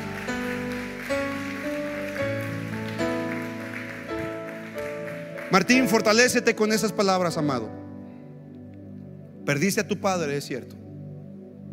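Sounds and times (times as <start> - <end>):
audience applause: 0.0 - 6.4
speech: 5.5 - 7.8, 9.5 - 10.8.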